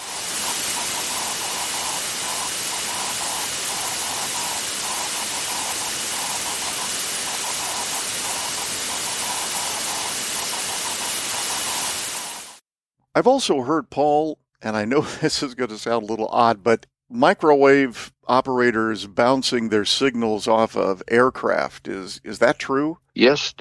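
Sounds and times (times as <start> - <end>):
radio static hiss: 0.0 - 12.6
speech: 13.2 - 23.6.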